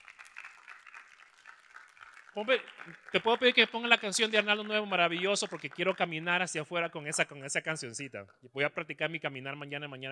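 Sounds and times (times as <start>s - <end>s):
crowd applause: 0.0s - 6.6s
speech: 2.4s - 10.1s.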